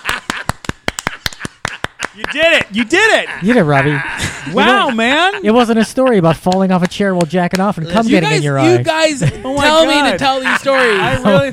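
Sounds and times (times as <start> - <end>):
applause: 0.0 - 2.7
laughter: 0.0 - 6.4, 8.2 - 11.5
speech: 2.2 - 11.5.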